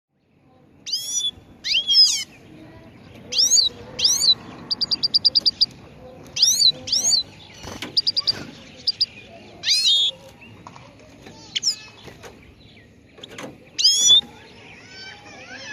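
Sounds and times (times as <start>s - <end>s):
song: 0.1s - 15.7s.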